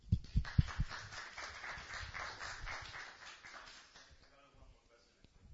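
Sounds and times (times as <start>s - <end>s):
small group applauding: 0.2s - 4.7s.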